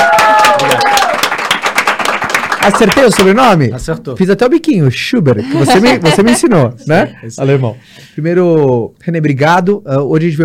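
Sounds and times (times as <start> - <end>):
audience applause: 0.0 - 3.4
speech: 2.6 - 10.4
laughter: 5.4 - 7.8.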